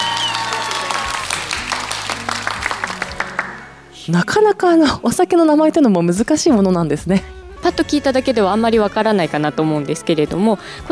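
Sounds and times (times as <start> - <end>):
audience applause at a sake presentation: 0.0 - 3.7
low music: 0.0 - 10.9
speech: 4.1 - 10.9.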